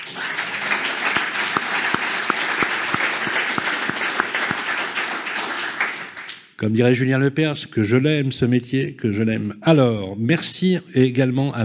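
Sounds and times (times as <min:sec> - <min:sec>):
enthusiastic live audience in Montauban applauding: 0:00.0 - 0:06.4
steady rhythmic beat of sharper claps: 0:00.0 - 0:06.6
speech: 0:06.6 - 0:11.6.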